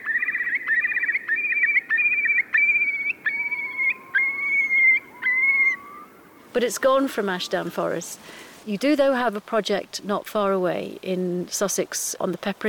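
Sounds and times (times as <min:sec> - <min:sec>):
Eurasian curlew bubbling trill and whistled notes: 0:00.0 - 0:06.2
speech: 0:06.6 - 0:12.6.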